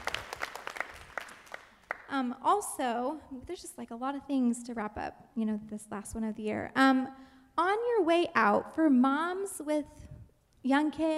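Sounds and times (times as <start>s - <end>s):
round of applause: 0.0s - 2.1s
speech: 2.1s - 11.1s.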